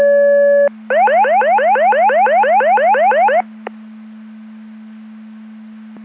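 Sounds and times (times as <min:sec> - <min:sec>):
siren: 0:00.1 - 0:03.5.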